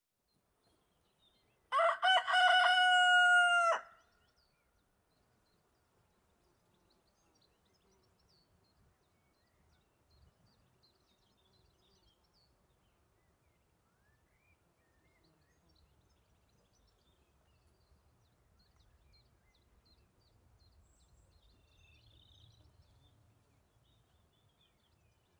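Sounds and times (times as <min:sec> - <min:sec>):
rooster crowing in the countryside during the day: 0:01.7 - 0:04.0.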